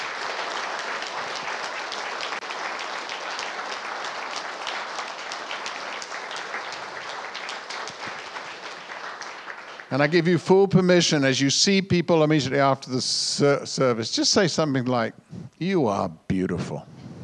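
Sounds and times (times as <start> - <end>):
audience applause: 0.0 - 12.6
speech: 9.9 - 16.9.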